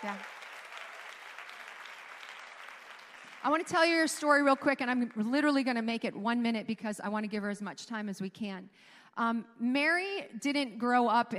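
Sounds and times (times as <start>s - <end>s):
speech: 0.0s - 0.4s, 3.4s - 11.3s
audience applause welcoming a woman guest: 0.0s - 4.2s.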